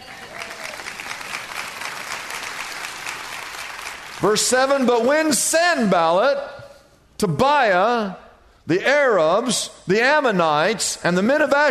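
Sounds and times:
audience clapping: 0.0s - 5.4s
speech: 4.2s - 6.6s, 7.2s - 11.6s.

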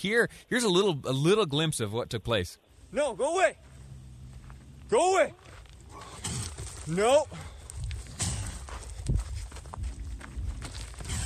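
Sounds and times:
speech: 0.0s - 3.7s, 4.9s - 6.2s, 6.9s - 7.5s
gravel disturbed by a cougar's paws lunging: 3.6s - 11.2s.

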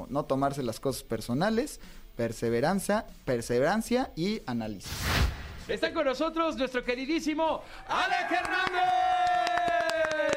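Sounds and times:
speech: 0.1s - 9.1s
applause: 7.9s - 10.3s.

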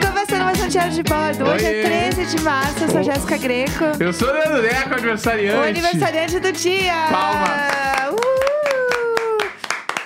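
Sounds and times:
speech: 0.3s - 7.9s
hands clapping: 7.1s - 10.0s.

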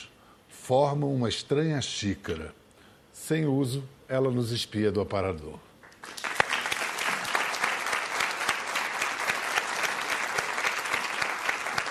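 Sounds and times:
speech: 0.7s - 2.6s, 3.3s - 5.7s
audience applauding: 5.8s - 11.9s.

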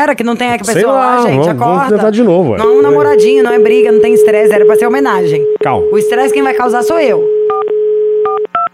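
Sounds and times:
speech: 0.0s - 7.3s
telephone dial tone: 2.6s - 8.5s.

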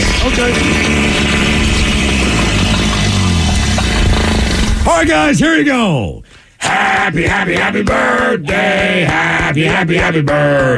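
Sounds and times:
rhino fart: 0.0s - 4.9s
speech: 0.2s - 1.3s, 4.9s - 10.7s.

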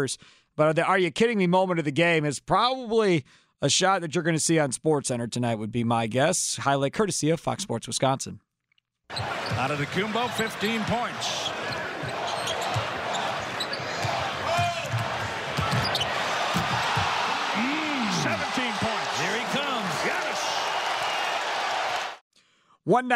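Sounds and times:
speech: 0.0s - 8.5s, 9.1s - 12.2s, 22.9s - 23.1s
basketball bouncing on court in NBA game: 9.1s - 10.6s, 11.4s - 17.5s
crowd roar: 9.1s - 22.2s
commentators talking: 9.5s - 15.6s, 17.1s - 20.7s.

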